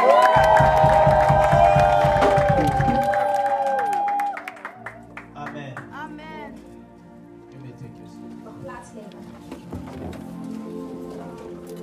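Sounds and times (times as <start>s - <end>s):
church congregation high shouts and whoops: 0.0s - 5.0s
church congregation rhythmic clapping: 0.0s - 5.9s.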